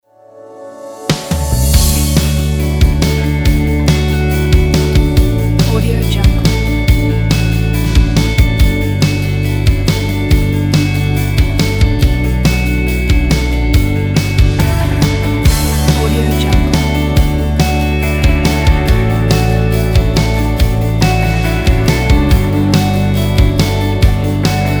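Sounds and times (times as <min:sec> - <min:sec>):
uplifting teen rock music: 0:01.1 - 0:24.7.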